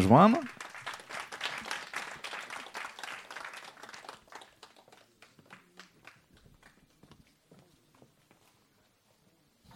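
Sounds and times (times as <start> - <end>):
speech: 0.0 - 0.6
audience applause: 0.0 - 6.9.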